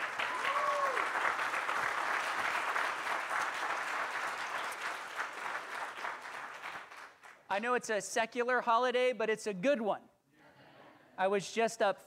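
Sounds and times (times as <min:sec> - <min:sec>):
church congregation applauding for mothers: 0:00.0 - 0:07.5
speech: 0:07.5 - 0:10.1, 0:11.2 - 0:12.0.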